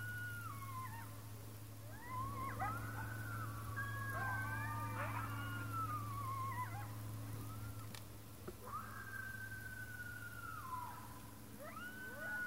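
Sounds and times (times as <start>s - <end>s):
coyotes howling: 0.0s - 12.4s.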